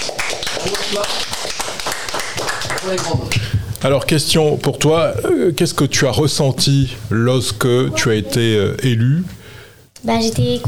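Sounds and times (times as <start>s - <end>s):
applause: 0.0s - 3.6s
speech: 0.6s - 1.5s, 2.8s - 9.4s, 10.0s - 10.6s.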